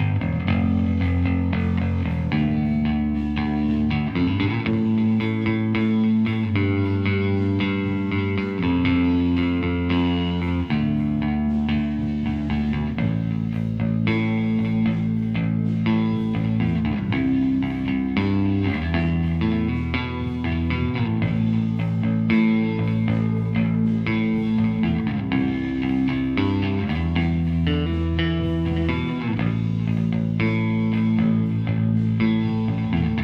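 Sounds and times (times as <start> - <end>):
bass through guitar amp recorded mono with M160 microphone: 0.0 - 33.2.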